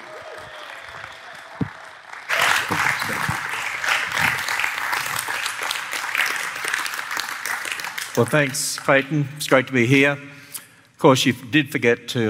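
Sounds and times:
audience at the Crossing clapping to welcome a speaker: 0.0 - 9.3
speech: 8.2 - 10.4, 11.0 - 12.2.

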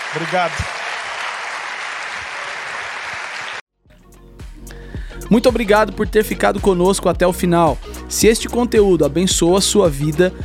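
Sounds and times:
audience applauding: 0.0 - 3.6
speech: 0.1 - 0.9, 5.3 - 10.4.

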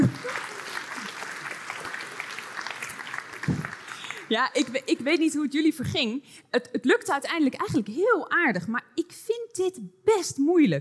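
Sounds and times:
audience applause: 0.0 - 4.8
speech: 4.3 - 10.7.

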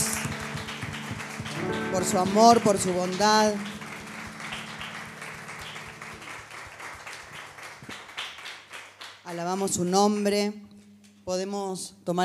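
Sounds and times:
audience applause: 0.0 - 9.3
speech: 2.0 - 3.8, 9.3 - 12.2.

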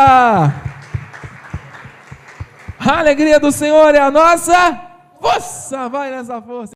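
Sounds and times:
audience applauding: 0.0 - 3.7
low thumps: 0.0 - 3.8
speech: 0.4 - 0.7, 2.9 - 6.7.

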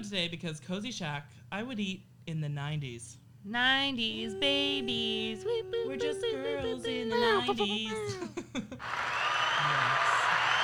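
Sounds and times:
speech: 0.0 - 9.2
laughter: 4.2 - 9.0
canned sitcom applause track: 8.8 - 10.6.

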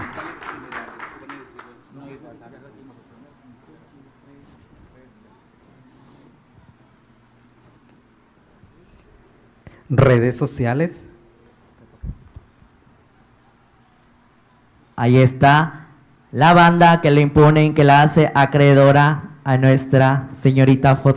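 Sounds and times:
audience applause: 0.0 - 1.9
speech: 9.8 - 11.1, 15.0 - 21.1.

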